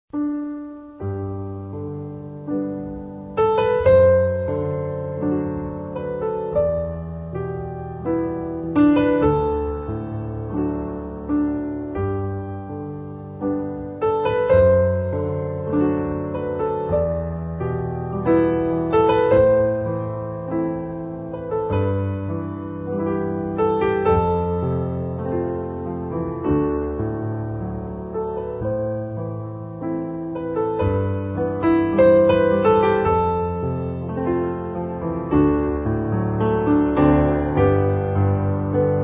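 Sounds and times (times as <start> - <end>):
instrumental music: 0.1 - 39.0.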